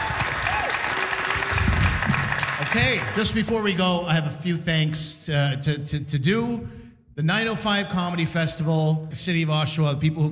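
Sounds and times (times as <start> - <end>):
audience applause at a comedy festival show: 0.0 - 3.5
speech: 2.8 - 10.3.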